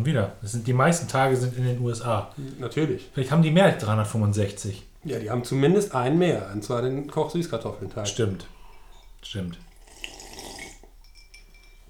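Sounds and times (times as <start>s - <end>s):
speech: 0.0s - 8.6s, 9.2s - 9.7s
slurping a drink: 8.9s - 11.0s.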